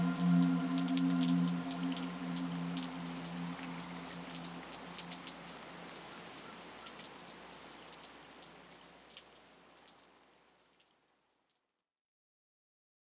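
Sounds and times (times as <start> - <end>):
meditation synth pad: 0.0 - 5.6
rain: 0.0 - 11.7.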